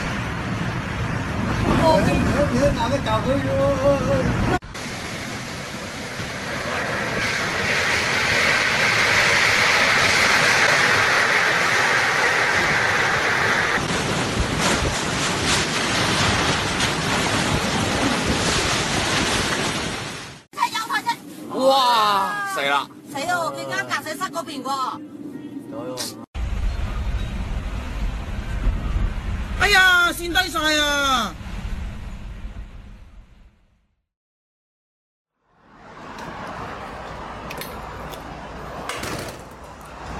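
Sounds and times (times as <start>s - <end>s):
typhoon wind and heavy rain: 0.0s - 25.4s, 26.4s - 32.5s
speech: 2.0s - 4.6s.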